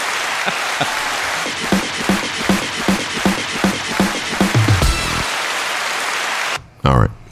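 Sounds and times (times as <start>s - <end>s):
laughter: 0.0s - 2.9s
crowd applause sound effect: 0.0s - 6.6s
sharp evenly spaced claps: 0.0s - 6.6s.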